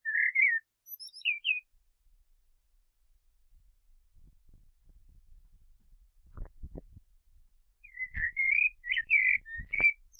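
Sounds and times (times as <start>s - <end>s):
common blackbird whistled phrases: 0.0s - 1.6s, 7.8s - 10.1s.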